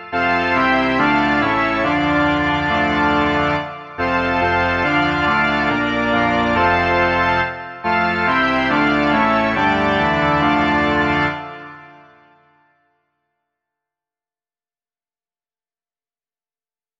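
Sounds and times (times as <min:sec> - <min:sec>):
organ: 0:00.0 - 0:12.5.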